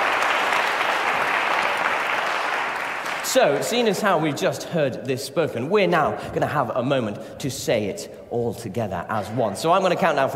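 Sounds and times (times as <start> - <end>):
audience applause: 0.0 - 3.9
speech: 3.3 - 10.3.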